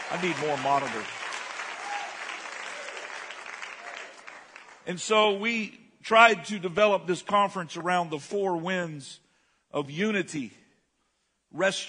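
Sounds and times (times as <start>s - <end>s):
audience clapping hands: 0.0s - 5.0s
speech: 0.1s - 1.2s, 4.8s - 10.6s, 11.5s - 11.8s.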